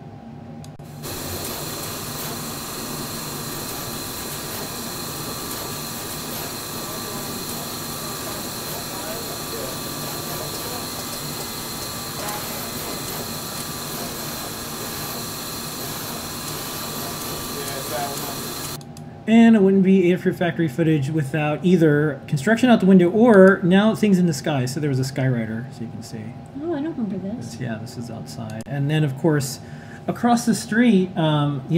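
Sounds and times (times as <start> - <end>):
Adafruit factory pick-and-place manufacturing machines running: 0.7 - 18.8
speech: 19.3 - 31.7.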